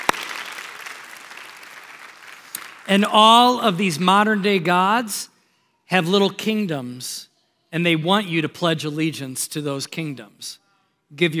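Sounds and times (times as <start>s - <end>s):
audience applause: 0.0s - 3.0s
speech: 2.9s - 5.3s, 5.9s - 11.3s.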